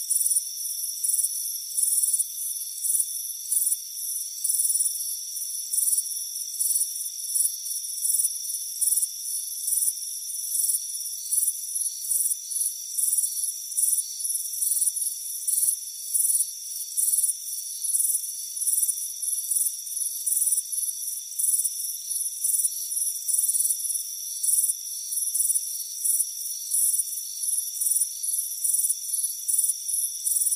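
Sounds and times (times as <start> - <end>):
cricket chirping: 0.0 - 30.5.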